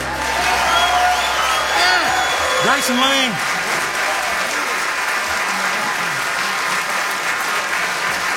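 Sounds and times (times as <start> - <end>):
audience applause: 0.0 - 8.3
speech: 2.8 - 3.5.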